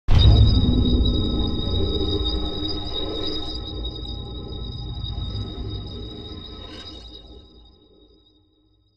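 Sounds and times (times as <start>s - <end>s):
apartment body stinger: 0.1s - 7.4s.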